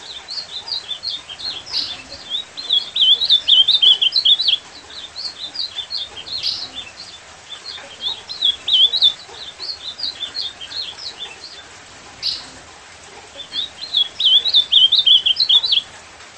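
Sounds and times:
Ultramarine grosbeak song of whistled notes: 0.0 - 12.6, 13.4 - 15.9.

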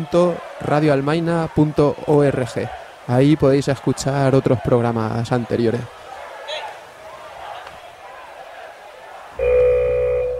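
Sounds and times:
speech: 0.0 - 6.0
alarm going off: 9.4 - 10.3.

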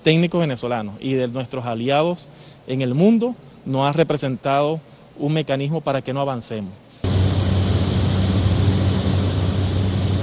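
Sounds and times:
speech: 0.0 - 6.8
propeller airplane engine droning at an aircraft factory in Venezuela: 7.0 - 10.2.

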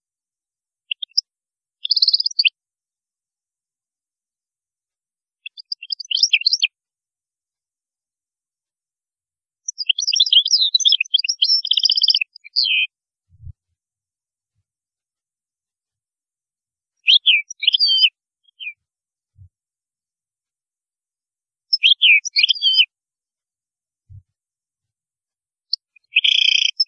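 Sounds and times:
European goldfinch twittering: 1.8 - 2.5, 5.5 - 6.7, 9.7 - 12.9, 17.1 - 18.8, 21.8 - 22.8, 26.0 - 26.8.

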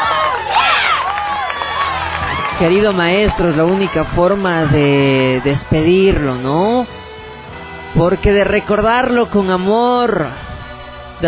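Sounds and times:
audience applause: 0.0 - 5.8
audience cheering: 0.0 - 6.8
speech: 2.6 - 7.0, 7.9 - 10.4.

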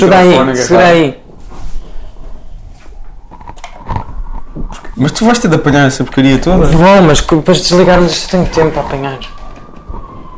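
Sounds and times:
speech: 0.0 - 1.2, 4.6 - 9.4
ambulance siren: 4.4 - 10.3.

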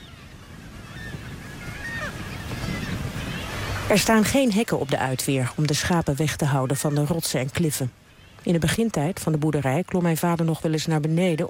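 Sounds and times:
fulmars cackling while defending nests at a seabird colony: 0.0 - 11.4
surf: 0.0 - 11.4
wind: 0.0 - 11.4
speech: 3.9 - 11.4.

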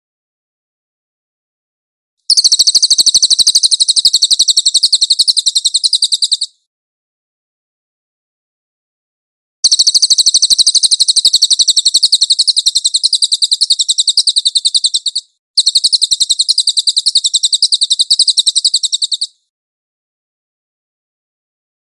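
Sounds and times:
cililin singing: 2.3 - 6.5, 9.6 - 19.4.

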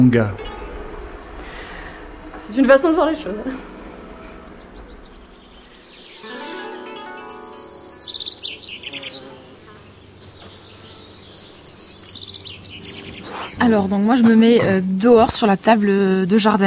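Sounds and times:
speech: 0.0 - 0.6, 2.5 - 3.7, 13.6 - 16.6
cicadas droning outdoors under trees in a garden beside a swimming pool: 0.4 - 16.6
bird-like tweets: 4.2 - 16.6.

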